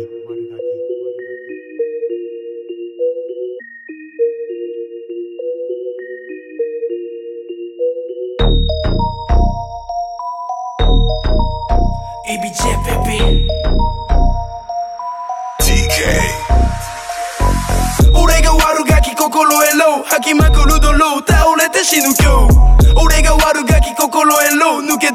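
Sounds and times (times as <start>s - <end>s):
chiming synth melody: 0.0s - 25.1s
rap song intro: 12.2s - 13.8s, 15.6s - 25.1s
booming bass and drums: 17.4s - 18.6s, 20.4s - 21.0s, 22.2s - 23.4s
speech: 20.1s - 25.1s.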